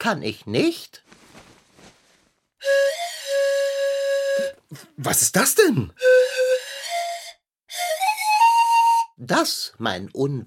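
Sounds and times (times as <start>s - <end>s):
speech: 0.0s - 1.2s, 2.6s - 2.9s, 4.7s - 6.5s, 9.2s - 10.4s
pan flute being played: 2.6s - 4.7s, 6.0s - 9.2s.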